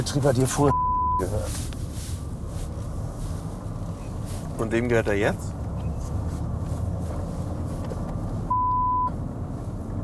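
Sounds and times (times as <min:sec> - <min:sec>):
speech: 0:00.0 - 0:01.8, 0:04.6 - 0:05.6
low engine-like rumble: 0:00.0 - 0:10.0
censor bleep masking a customer's name: 0:00.7 - 0:01.3, 0:08.5 - 0:09.1.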